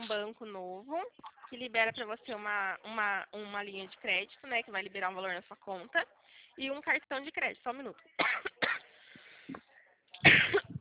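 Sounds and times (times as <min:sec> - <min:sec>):
speech: 0:00.1 - 0:08.7
person coughing after choking: 0:08.2 - 0:08.8, 0:10.2 - 0:10.7.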